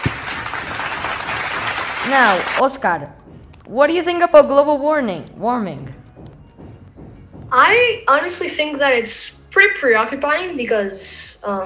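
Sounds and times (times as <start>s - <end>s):
audience applause: 0.0s - 2.6s
speech: 2.1s - 6.0s, 7.5s - 11.6s.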